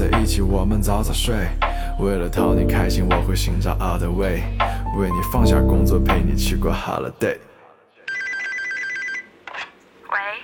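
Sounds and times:
speech: 0:00.2 - 0:07.5
telephone ringing: 0:08.1 - 0:09.4.

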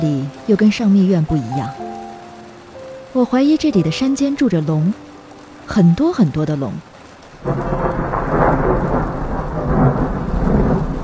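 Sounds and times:
speech: 0:00.0 - 0:01.8, 0:03.1 - 0:05.0, 0:05.7 - 0:07.8
long deep rolling thunder in rain: 0:07.4 - 0:11.0.

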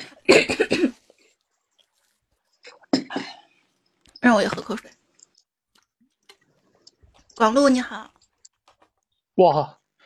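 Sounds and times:
person coughing: 0:00.0 - 0:01.1
speech: 0:00.3 - 0:00.6, 0:04.3 - 0:05.0, 0:07.4 - 0:08.2, 0:09.4 - 0:09.8.

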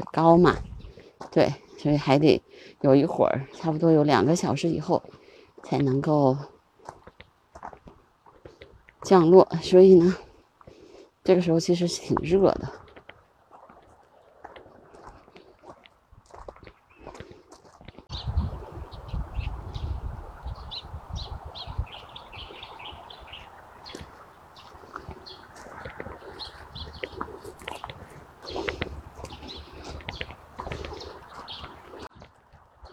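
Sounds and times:
speech: 0:00.1 - 0:00.7, 0:01.3 - 0:06.5, 0:09.0 - 0:10.3, 0:11.2 - 0:12.8
birds calling: 0:18.1 - 0:32.1.

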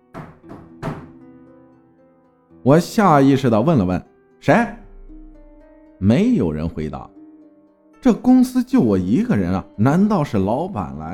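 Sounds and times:
knocking on a door: 0:00.1 - 0:01.2
speech: 0:02.6 - 0:04.8, 0:06.0 - 0:07.2, 0:08.0 - 0:11.1.

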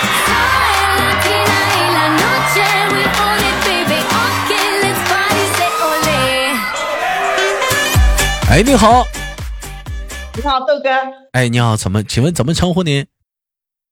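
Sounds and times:
applause: 0:00.0 - 0:06.6
crowd cheering and whooping: 0:00.0 - 0:08.3
speech: 0:08.6 - 0:09.2, 0:10.4 - 0:13.2.

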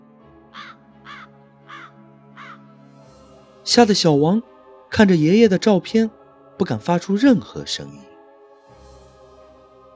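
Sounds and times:
bird call outside the window: 0:00.5 - 0:02.7
speech: 0:03.7 - 0:08.1.

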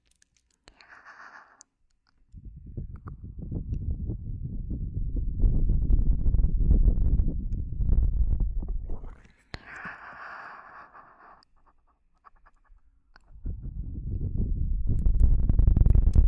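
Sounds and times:
deep muffled rumble from ear cupping: 0:02.4 - 0:09.2, 0:13.3 - 0:16.2.

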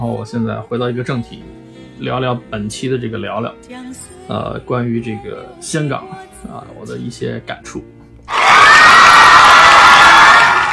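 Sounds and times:
speech: 0:00.0 - 0:08.9
audience applause: 0:08.3 - 0:10.7.

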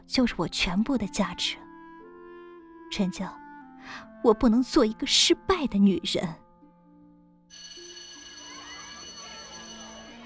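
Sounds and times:
speech: 0:00.1 - 0:01.6, 0:02.9 - 0:06.4
school bell ringing: 0:07.5 - 0:10.2.

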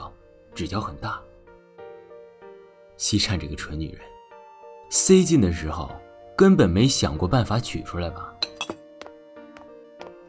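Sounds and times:
speech: 0:00.6 - 0:01.3, 0:03.0 - 0:04.1, 0:04.9 - 0:08.8
thick glass bottle being struck: 0:08.4 - 0:08.8.

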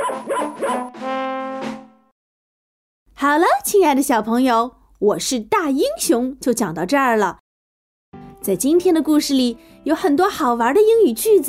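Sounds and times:
dog barking: 0:00.0 - 0:00.9
speech: 0:03.2 - 0:07.4, 0:08.4 - 0:11.4.

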